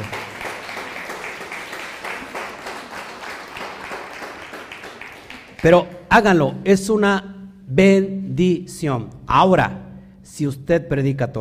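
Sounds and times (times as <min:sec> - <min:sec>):
audience applause: 0:00.0 - 0:05.8
speech: 0:05.6 - 0:11.3.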